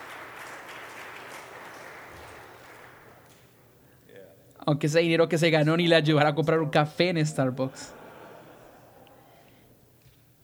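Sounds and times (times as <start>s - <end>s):
audience applause: 0.0s - 3.7s
speech: 4.7s - 8.0s
laughter: 7.7s - 9.8s.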